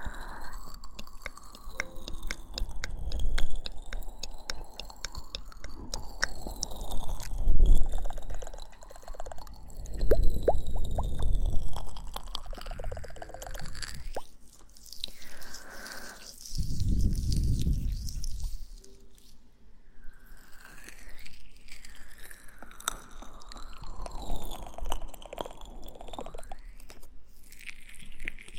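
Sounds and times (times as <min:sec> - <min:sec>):
wet kisses and close mouth sounds in the ear: 0:00.0 - 0:18.8.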